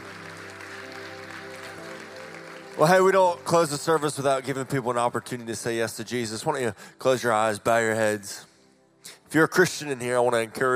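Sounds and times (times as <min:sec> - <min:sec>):
audience clapping: 0:00.0 - 0:05.8
speech: 0:02.8 - 0:10.7.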